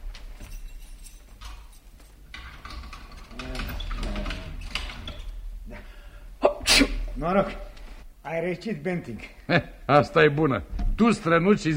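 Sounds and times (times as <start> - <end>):
door being locked with a key: 0.4 - 5.4
speech: 7.2 - 7.7, 8.3 - 11.7.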